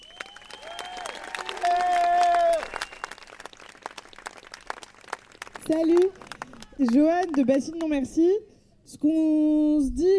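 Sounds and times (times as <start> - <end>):
crowd applauding and cheering: 0.0 - 7.8
speech: 5.7 - 6.2, 6.8 - 10.1.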